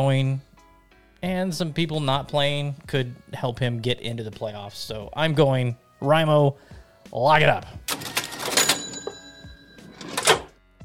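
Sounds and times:
speech: 0.0 - 0.5, 1.2 - 8.0
cash register drawer sliding and thudding: 7.9 - 9.2, 9.8 - 10.6
cash register mechanical clatter: 7.9 - 10.6.

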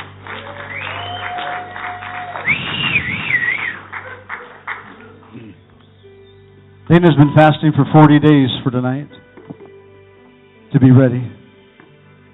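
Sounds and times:
audience applause: 0.0 - 5.6
whistling: 0.3 - 7.7
speech: 6.9 - 9.3, 10.7 - 11.4.

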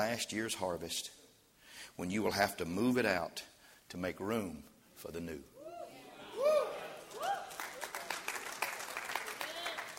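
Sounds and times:
speech: 0.0 - 1.2, 1.8 - 5.5
people whooping: 5.6 - 8.3, 9.0 - 9.9
audience clapping: 7.0 - 9.9.

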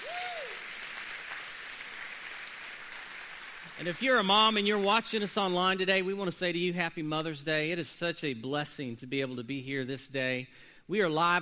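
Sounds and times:
audience applause: 0.0 - 4.1
speech: 3.8 - 11.4.

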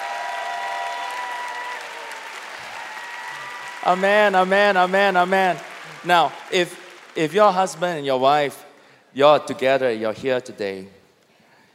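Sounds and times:
church audience clapping: 0.0 - 8.9
speech: 3.8 - 8.6, 9.2 - 11.0.

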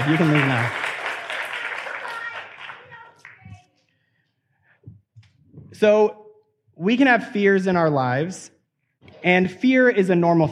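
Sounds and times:
speech: 0.0 - 0.8, 5.8 - 6.2, 6.8 - 10.5
audience applause: 0.0 - 3.5.

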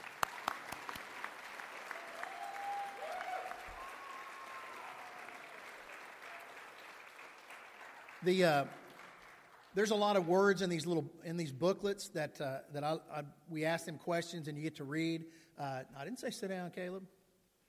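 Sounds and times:
audience clapping: 0.0 - 10.3
speech: 8.2 - 8.8, 9.8 - 17.2.

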